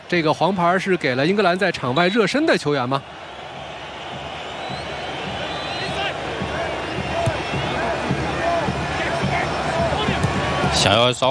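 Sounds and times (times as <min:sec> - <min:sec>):
stadium crowd cheering: 0:00.0 - 0:11.2
speech: 0:00.1 - 0:03.3, 0:10.8 - 0:11.2
shouts and whistles: 0:01.8 - 0:10.8.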